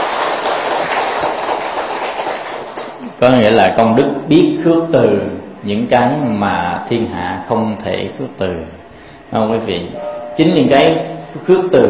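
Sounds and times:
audience applause: 0.0 - 3.0
speech: 3.2 - 11.8.

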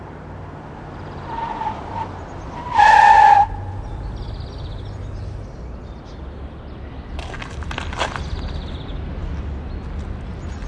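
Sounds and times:
car tires squealing in a skid: 0.9 - 4.2.

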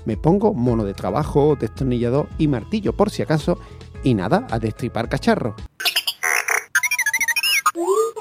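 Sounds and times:
speech: 0.0 - 5.8
robot beeping and whistling: 5.8 - 8.1.

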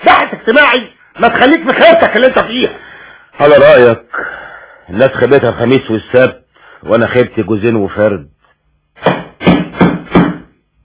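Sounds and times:
speech: 0.5 - 8.4
heavy knocks on a door in a radio drama: 9.1 - 10.6.

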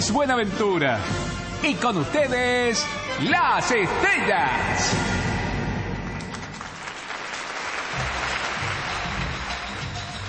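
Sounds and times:
speech: 0.0 - 5.2
studio audience clapping in a large studio: 6.2 - 10.2.

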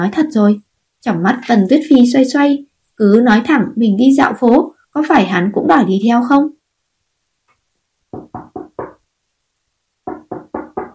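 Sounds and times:
speech: 0.0 - 6.6
knocking on a door: 8.1 - 9.0, 10.0 - 10.9.

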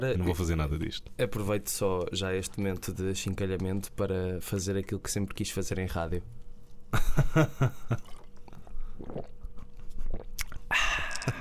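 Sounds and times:
speech: 0.0 - 8.2, 9.0 - 9.4
person drinking water: 7.9 - 11.3.

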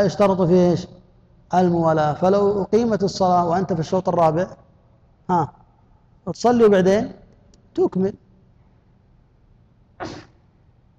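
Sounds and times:
speech: 0.0 - 4.6, 5.3 - 5.6, 6.2 - 7.2, 7.8 - 8.2, 10.0 - 10.3
sneeze at a religious lesson: 10.0 - 10.5.

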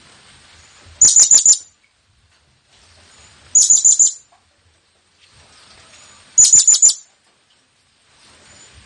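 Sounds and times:
blue-crowned hanging parrot calls: 1.0 - 1.7, 3.6 - 4.3, 6.4 - 7.1.

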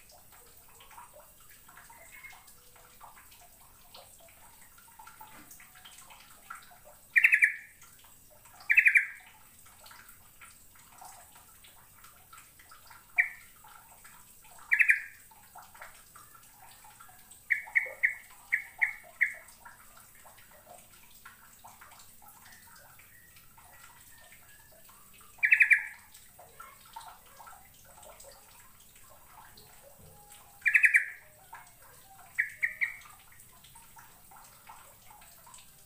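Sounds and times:
bird chirping: 7.2 - 7.6, 8.7 - 9.2, 14.7 - 15.1, 17.5 - 19.4, 25.4 - 26.0, 29.8 - 33.1.

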